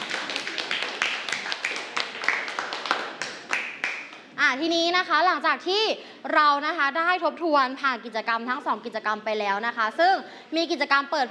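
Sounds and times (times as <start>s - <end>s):
group applause: 0.0s - 4.4s
speech: 4.5s - 11.3s.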